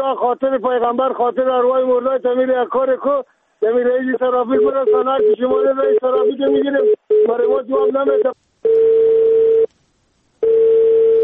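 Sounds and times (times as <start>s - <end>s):
speech: 0.0s - 8.9s
telephone tone after a call is cut off: 4.6s - 9.7s, 10.4s - 11.2s.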